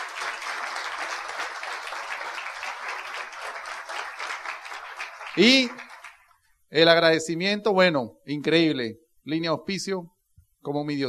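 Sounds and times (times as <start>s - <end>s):
audience applause: 0.0s - 6.2s
speech: 5.4s - 5.8s, 6.7s - 11.0s.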